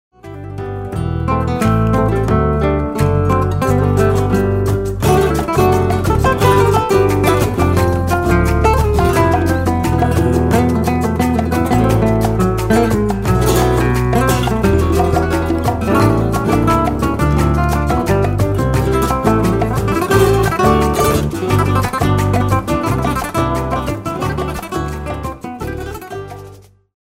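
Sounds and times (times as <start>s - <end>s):
flamenco falseta: 0.2s - 26.9s.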